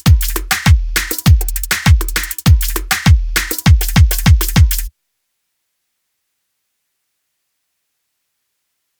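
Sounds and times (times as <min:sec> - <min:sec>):
rhythmic background music at 100 BPM: 0:00.0 - 0:04.9.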